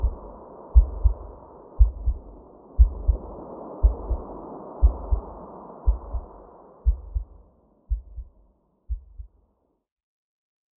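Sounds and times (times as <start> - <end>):
womb sounds: 0.0 - 8.3
white noise: 0.0 - 9.2.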